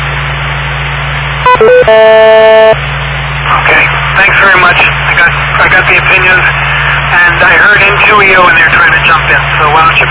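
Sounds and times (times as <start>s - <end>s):
radio repeater courtesy tone beeps: 0.0s - 9.2s
buzzy steady tone: 1.5s - 2.8s
speech: 1.6s - 2.9s, 3.5s - 10.0s.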